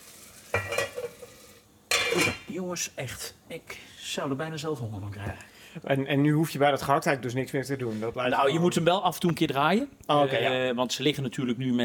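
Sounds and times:
water added to hot fat sizzling in a pan: 0.0s - 2.5s
speech: 2.2s - 11.8s.

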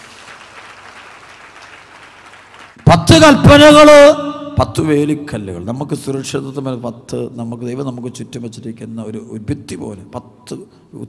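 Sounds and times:
church congregation clapping in thanks to the Lord: 0.0s - 3.7s
speech: 2.8s - 11.0s.

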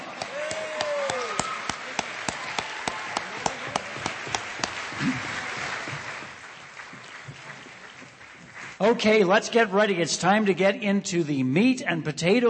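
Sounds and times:
crowd noise and murmuring: 0.0s - 6.9s
audience applause: 0.0s - 9.1s
speech: 8.9s - 12.4s.

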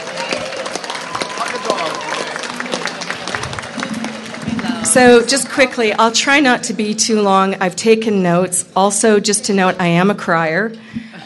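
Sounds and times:
crowd cheers: 0.0s - 5.3s
audience applause: 0.0s - 5.9s
murmuring voices: 0.0s - 7.5s
speech: 4.9s - 11.2s.

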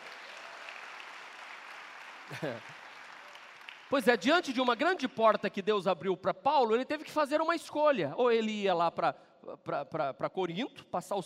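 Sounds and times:
crowd applauding: 0.0s - 5.2s
laughter: 2.3s - 2.8s
speech: 2.3s - 2.8s, 3.9s - 11.2s.

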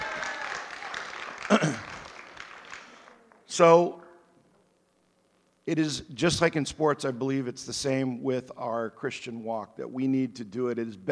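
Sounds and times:
crowd applauding: 0.0s - 3.5s
speech: 1.5s - 1.9s, 3.6s - 4.0s, 5.6s - 11.1s.

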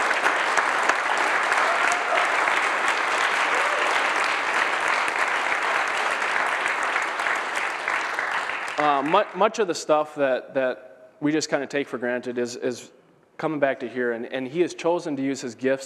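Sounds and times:
church congregation applause: 0.0s - 9.6s
speech: 9.0s - 15.8s.

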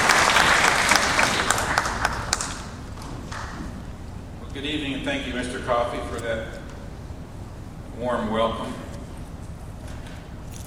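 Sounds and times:
audience applause welcoming a judge at a KSB event: 0.0s - 3.6s
speech: 5.0s - 6.6s, 8.0s - 8.8s.

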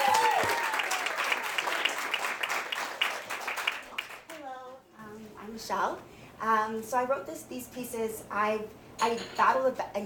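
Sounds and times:
audience applause and cheering: 0.0s - 4.3s
speech: 5.6s - 10.0s.

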